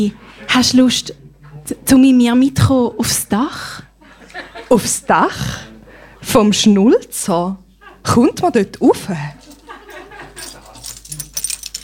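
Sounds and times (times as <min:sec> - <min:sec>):
speech: 0:00.0 - 0:09.4
laughter: 0:04.0 - 0:05.3, 0:07.7 - 0:08.3, 0:09.4 - 0:11.1
bunch of keys jangling: 0:09.4 - 0:11.8.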